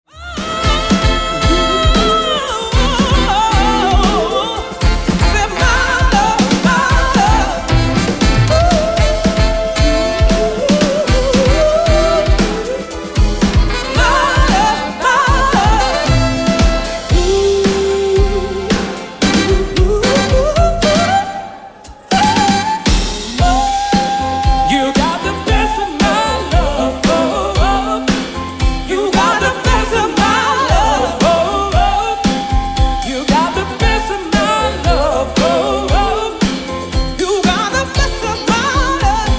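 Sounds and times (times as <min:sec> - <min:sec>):
soul band: 0:00.1 - 0:39.3.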